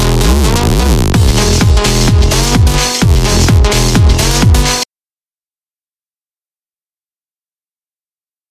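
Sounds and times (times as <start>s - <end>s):
tecktonic electronic dance remix: 0.0s - 4.9s.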